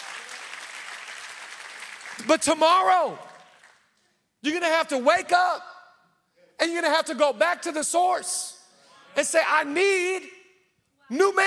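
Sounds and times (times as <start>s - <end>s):
audience clapping: 0.0s - 4.1s
speech: 2.2s - 3.3s, 4.4s - 5.7s, 6.6s - 8.6s, 9.2s - 10.4s, 11.1s - 11.4s.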